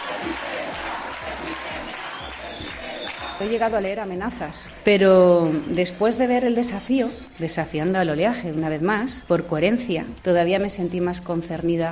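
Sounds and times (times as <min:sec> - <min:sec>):
crowd applause: 0:00.0 - 0:03.8
speech: 0:00.4 - 0:11.9.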